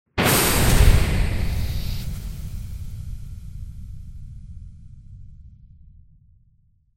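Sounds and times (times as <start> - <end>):
explosion: 0.1 - 6.4.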